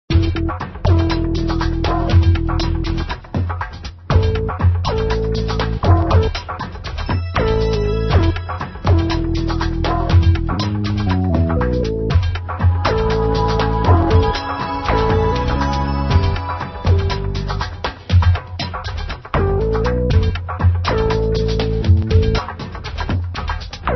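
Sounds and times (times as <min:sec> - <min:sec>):
LEGO Technic drums: 0:00.1 - 0:23.9.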